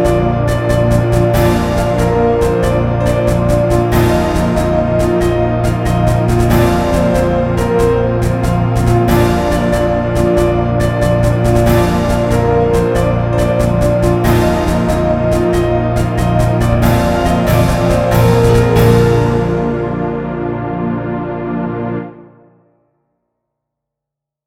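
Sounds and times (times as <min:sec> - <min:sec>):
christmas song melody: 0:00.0 - 0:22.8.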